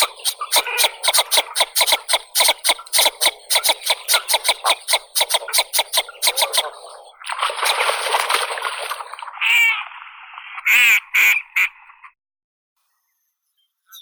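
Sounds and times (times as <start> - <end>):
marbled duck Marmaronetta angustirostris calling: 0.0 - 9.9, 10.6 - 11.9.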